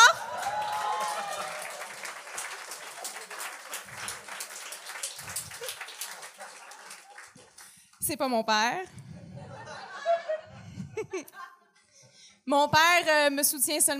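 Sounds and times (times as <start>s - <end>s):
audience applause: 0.0s - 8.0s
speech: 8.1s - 9.0s, 12.5s - 13.9s
laughter: 9.3s - 11.7s.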